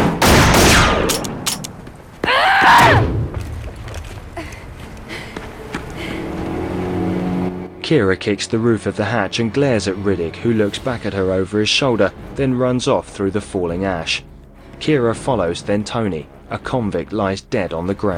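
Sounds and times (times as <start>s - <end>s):
gunfire bursts: 0.2s - 1.6s
low rumbling: 2.9s - 16.8s
speech: 7.9s - 18.1s.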